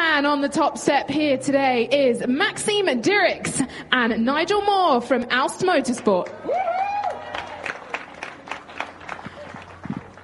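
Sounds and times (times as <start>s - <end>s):
speech: 0.2s - 6.8s
crowd applauding podium winners: 6.2s - 10.2s.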